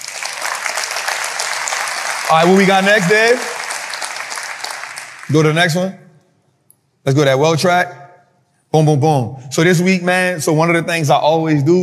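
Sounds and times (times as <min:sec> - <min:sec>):
audience clapping: 0:00.0 - 0:05.9
speech: 0:02.3 - 0:03.5, 0:05.3 - 0:06.0, 0:07.0 - 0:08.0, 0:08.7 - 0:11.8.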